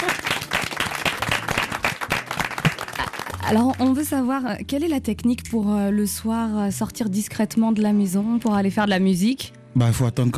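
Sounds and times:
audience clapping: 0:00.0 - 0:04.1
speech: 0:03.5 - 0:10.3.

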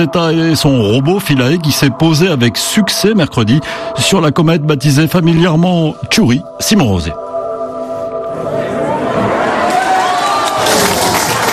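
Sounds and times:
speech: 0:00.0 - 0:07.3
control room crowd cheering and applauding: 0:08.5 - 0:11.5.

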